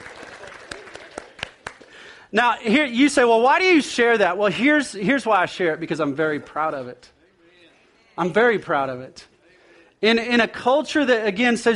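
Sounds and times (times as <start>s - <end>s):
soft polite golf clap from a few people: 0.0s - 2.0s
speech: 2.3s - 7.2s, 8.2s - 9.3s, 10.0s - 11.7s.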